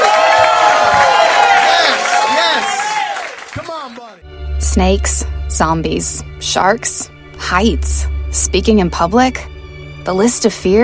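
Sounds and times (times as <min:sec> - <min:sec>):
audience applause and cheering with whoops: 0:00.0 - 0:04.3
speech: 0:04.8 - 0:10.8.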